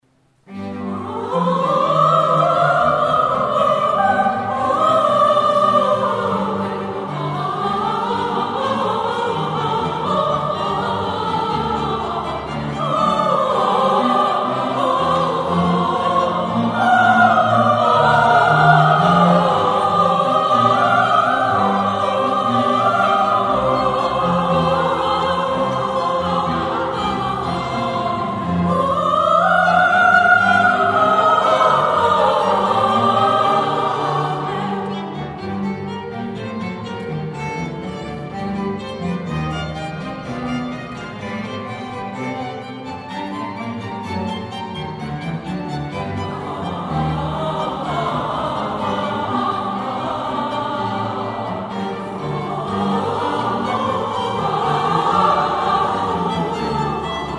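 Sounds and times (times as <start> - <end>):
choir singing amen: 0.4 - 57.3.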